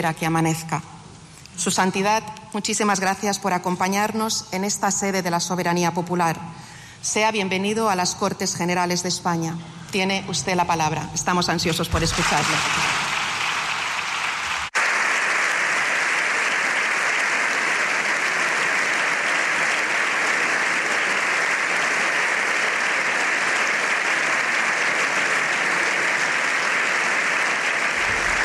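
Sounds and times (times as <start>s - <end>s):
speech: 0.0s - 1.0s, 1.6s - 13.0s
applause in parliament chamber: 11.9s - 28.4s.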